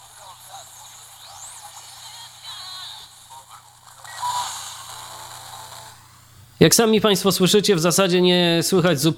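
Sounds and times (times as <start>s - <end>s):
radio white noise static without antenna: 0.0s - 6.8s
speech: 6.6s - 9.1s.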